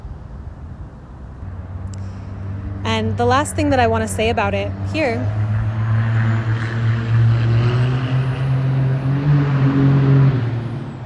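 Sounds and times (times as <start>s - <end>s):
fast car passing by: 1.4s - 11.0s
speech: 2.9s - 5.4s.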